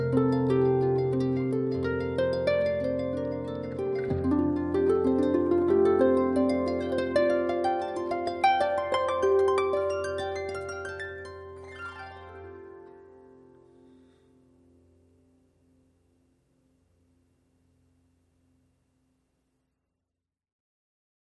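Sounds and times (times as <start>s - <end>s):
harp music: 0.0s - 14.9s.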